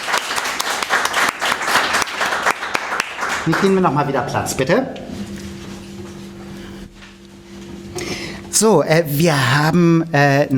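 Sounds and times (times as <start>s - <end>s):
audience applause: 0.0s - 4.1s
speech: 3.4s - 5.3s, 8.6s - 10.5s.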